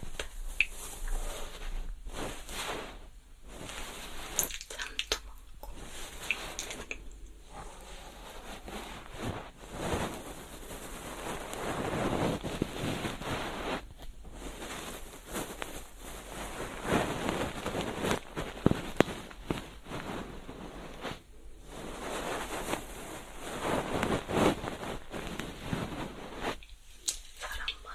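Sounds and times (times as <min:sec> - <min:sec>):
ear cleaning with a soft feather pick: 0:00.0 - 0:05.0, 0:05.7 - 0:27.9
faint steady high hiss: 0:00.0 - 0:27.9.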